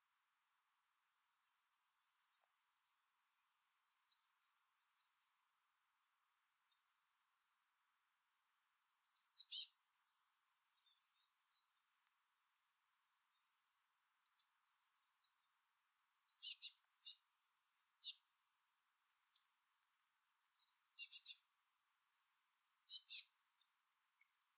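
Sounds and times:
Eurasian blue tit trilling song: 2.0s - 3.0s, 4.1s - 5.4s, 6.6s - 7.7s, 9.0s - 9.8s, 14.3s - 15.4s, 16.1s - 17.2s, 17.8s - 18.2s, 19.0s - 21.5s, 22.7s - 23.3s.

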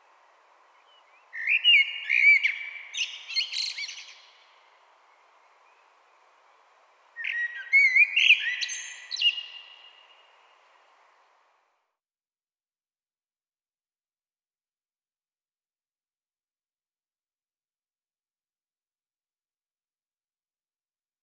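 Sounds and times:
common blackbird singing: 0.7s - 6.6s, 7.2s - 10.8s.

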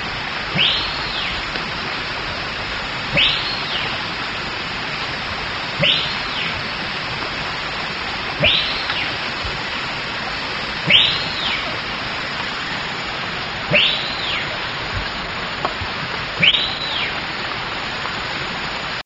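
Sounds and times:
steady hiss: 0.0s - 19.0s
bird giving arched whistles: 0.5s - 1.4s, 3.1s - 4.0s, 5.8s - 6.6s, 8.4s - 9.2s, 10.8s - 11.8s, 13.7s - 14.6s, 16.4s - 17.2s.

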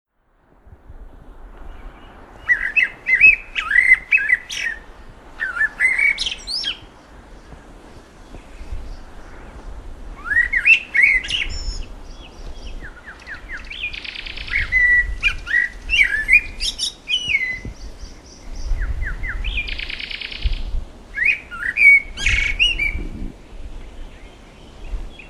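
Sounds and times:
Eurasian blackbird song: 1.7s - 6.9s, 10.2s - 23.0s.

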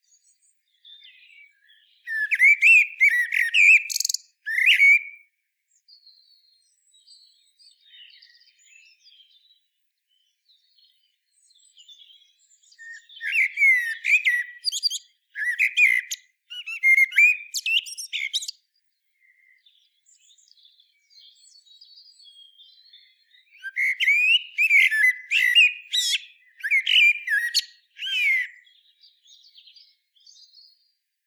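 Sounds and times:
common blackbird singing: 0.0s - 31.0s.

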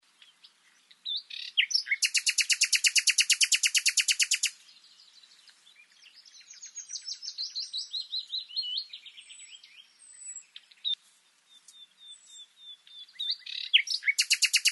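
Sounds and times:
Common nightingale song Luscinia megarhynchos: 1.0s - 4.6s, 6.2s - 11.0s, 11.8s - 14.6s.

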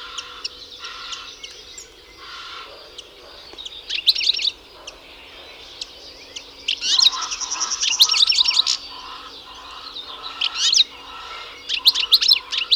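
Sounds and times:
European goldfinch Carduelis carduelis twittering: 0.0s - 12.7s.

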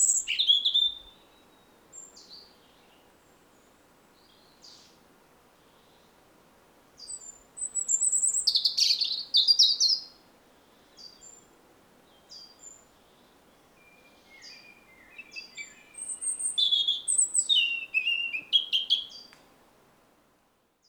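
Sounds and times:
European robin singing: 0.0s - 3.0s, 7.0s - 10.1s, 12.1s - 19.4s.

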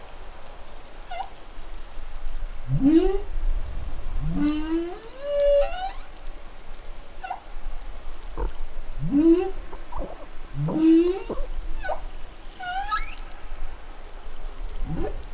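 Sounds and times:
humpback whale song: 2.7s - 3.4s, 4.2s - 6.2s, 7.2s - 7.5s, 8.4s - 13.4s, 14.7s - 15.3s.

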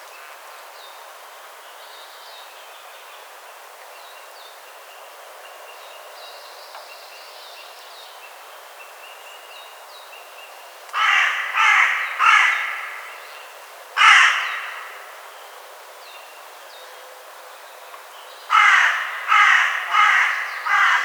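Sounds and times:
Carrion crow Corvus corone cawing: 11.0s - 13.2s, 14.0s - 15.2s, 18.5s - 21.0s.

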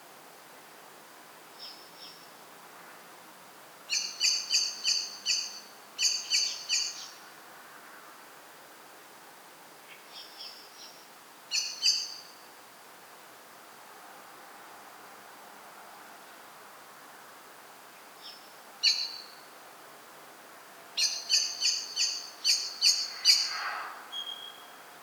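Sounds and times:
common blackbird giving chink notes: 3.9s - 7.2s, 11.5s - 12.4s, 18.2s - 19.4s, 21.0s - 24.7s.

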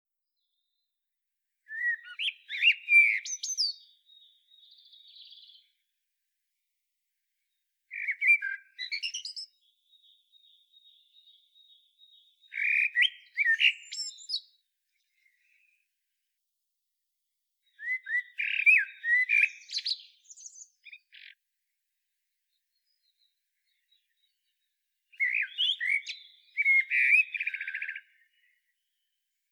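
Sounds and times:
common blackbird singing: 1.7s - 5.8s, 7.9s - 15.7s, 17.6s - 21.4s, 22.8s - 29.1s.

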